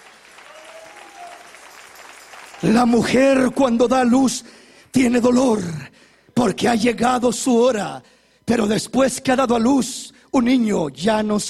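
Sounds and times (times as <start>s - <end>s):
church congregation clapping during a service: 0.0s - 3.6s
speech: 2.6s - 11.4s.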